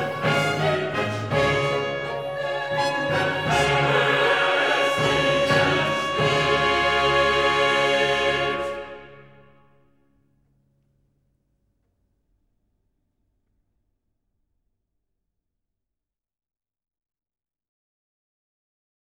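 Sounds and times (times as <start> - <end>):
song chorus da capo: 0.0 - 9.6.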